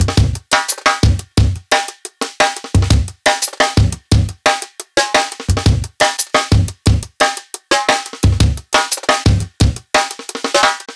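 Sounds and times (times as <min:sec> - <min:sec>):
live jungle drum break: 0:00.0 - 0:10.9.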